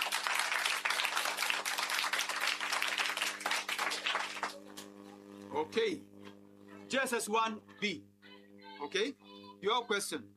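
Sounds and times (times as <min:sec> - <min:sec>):
round of applause from a group: 0:00.0 - 0:04.9
low constant hum: 0:03.0 - 0:10.3
speech: 0:05.6 - 0:06.1, 0:06.9 - 0:08.1, 0:08.8 - 0:10.3.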